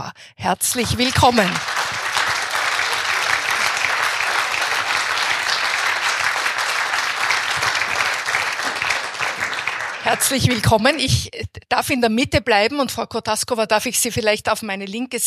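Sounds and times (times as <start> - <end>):
speech: 0.0 - 1.8, 10.1 - 15.2
audience applauding to welcome an artist and a female boxing world champion: 0.6 - 11.0.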